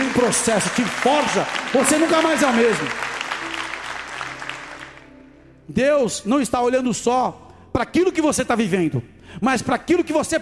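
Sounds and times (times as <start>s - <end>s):
audience applauding: 0.0s - 5.2s
speech: 0.2s - 3.1s, 5.7s - 10.3s.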